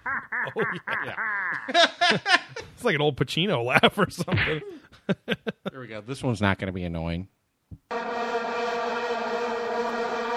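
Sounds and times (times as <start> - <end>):
laughter: 0.0 - 2.8, 3.7 - 5.8
speech: 0.2 - 8.2
vuvuzela horn from a soundboard blaring: 7.9 - 10.3.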